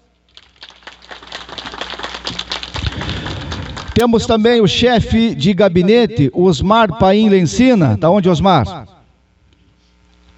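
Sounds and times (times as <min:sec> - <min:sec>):
crowd applauding: 0:00.3 - 0:04.3
speech: 0:04.0 - 0:09.0.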